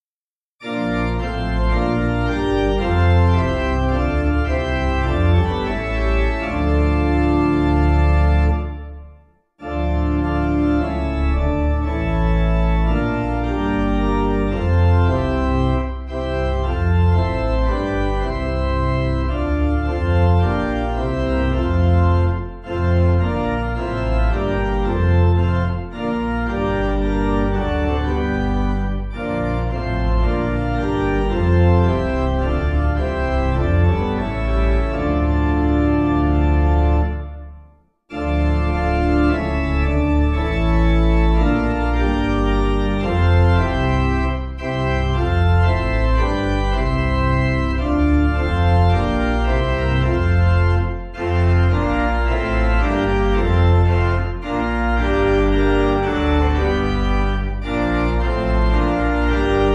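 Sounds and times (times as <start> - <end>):
organ playing a hymn: 0.6 - 59.7.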